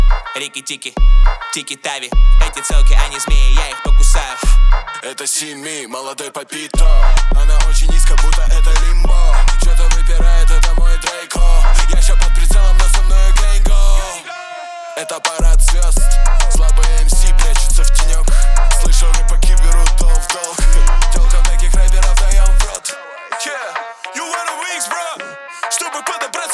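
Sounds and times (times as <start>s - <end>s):
29-33 Hz low bass tone: 0.0s - 0.3s, 2.2s - 4.8s, 6.8s - 14.1s, 15.4s - 22.7s.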